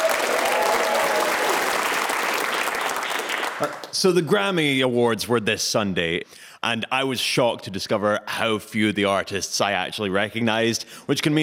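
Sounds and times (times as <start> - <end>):
audience applauding a Scottish comedian's entrance: 0.0 - 4.0
speech: 3.6 - 11.4.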